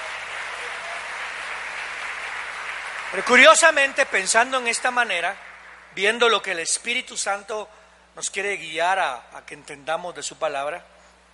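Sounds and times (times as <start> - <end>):
audience applause: 0.0 - 6.0
speech: 3.1 - 10.9.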